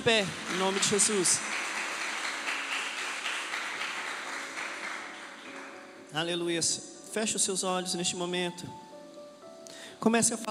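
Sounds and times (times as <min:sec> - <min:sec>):
speech: 0:00.0 - 0:01.8, 0:06.1 - 0:08.9, 0:10.0 - 0:10.4
audience applauding: 0:00.0 - 0:06.0.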